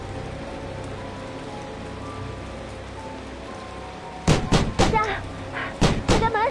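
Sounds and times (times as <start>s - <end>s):
hard knocking on a door: 4.3s - 5.0s, 5.8s - 6.3s.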